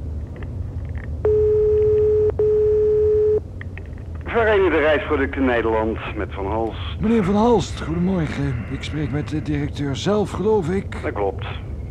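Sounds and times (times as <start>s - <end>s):
telephone line ringing tone: 1.3s - 3.4s
speech: 4.7s - 11.8s.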